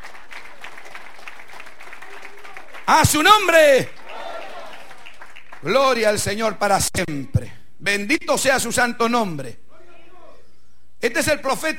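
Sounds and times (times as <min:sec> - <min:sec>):
church congregation clapping in praise during a worship service: 0:00.0 - 0:06.4
speech: 0:02.9 - 0:04.0, 0:05.6 - 0:09.6, 0:11.0 - 0:11.7.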